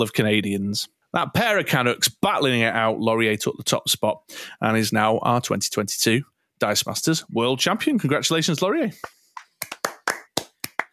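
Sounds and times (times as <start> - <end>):
speech: 0.0 - 9.7
hand clapping: 9.0 - 10.9.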